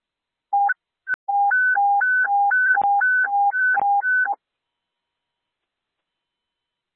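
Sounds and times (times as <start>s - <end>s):
radio channel sound test beeps at an airport communication center: 1.3s - 4.4s.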